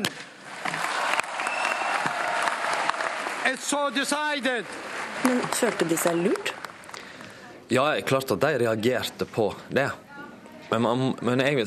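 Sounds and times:
crowd applauding: 0:00.1 - 0:07.4
speech: 0:03.4 - 0:06.6, 0:07.7 - 0:10.0, 0:10.7 - 0:11.6.

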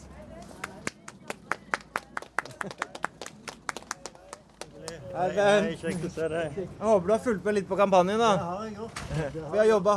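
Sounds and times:
applause: 0:00.6 - 0:05.1
speech: 0:02.6 - 0:02.9, 0:05.2 - 0:09.9.

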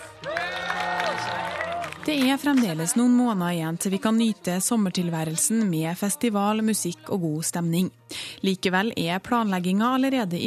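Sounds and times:
audience applause: 0:00.0 - 0:03.2
speech: 0:02.0 - 0:10.4.

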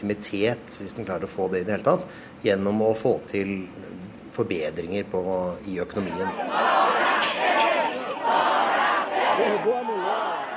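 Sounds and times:
speech: 0:00.0 - 0:06.9
protesters chanting outside the presidential palace in Brasilia: 0:06.0 - 0:10.5.

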